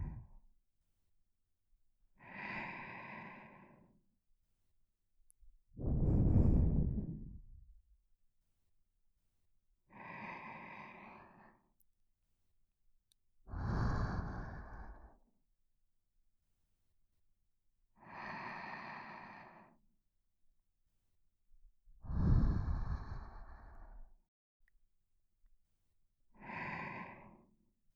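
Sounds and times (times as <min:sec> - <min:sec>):
person breathing in sleep: 0:00.0 - 0:00.3, 0:02.2 - 0:04.0, 0:05.8 - 0:07.6, 0:09.9 - 0:11.7, 0:13.5 - 0:15.2, 0:18.0 - 0:19.8, 0:22.0 - 0:24.1, 0:26.4 - 0:27.6.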